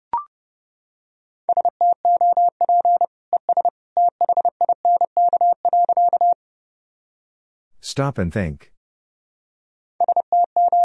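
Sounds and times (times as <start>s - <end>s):
Morse code beeps at 30wpm: 1.5s - 6.4s, 10.0s - 10.8s
person speaking: 7.8s - 8.8s.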